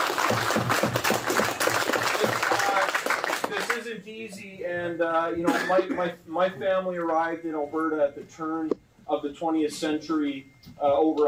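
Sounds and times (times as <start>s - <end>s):
audience applause: 0.0s - 3.8s
speech: 4.3s - 11.2s.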